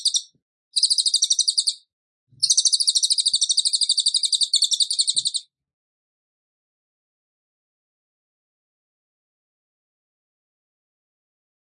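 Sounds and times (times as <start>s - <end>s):
bird buzzy trill: 0.0s - 1.8s, 2.4s - 5.4s.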